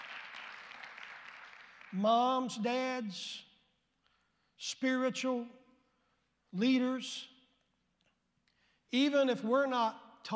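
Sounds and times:
crowd, audience hand clapping: 0:00.0 - 0:02.1
speech: 0:01.9 - 0:03.5, 0:04.6 - 0:05.6, 0:06.5 - 0:07.3, 0:08.9 - 0:10.3.

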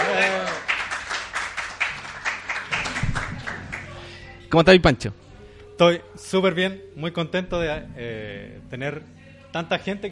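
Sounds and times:
live audience applause: 0:00.0 - 0:04.1
speech: 0:04.5 - 0:05.2, 0:05.8 - 0:10.0.

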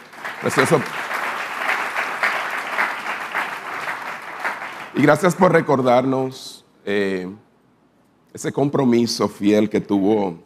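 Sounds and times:
audience applause: 0:00.0 - 0:05.3
speech: 0:00.4 - 0:01.0, 0:05.0 - 0:07.4, 0:08.3 - 0:10.4.

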